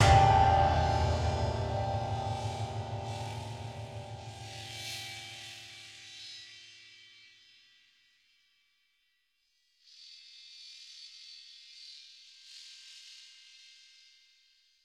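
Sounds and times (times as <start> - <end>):
giant piano hit stinger: 0.0 - 5.2.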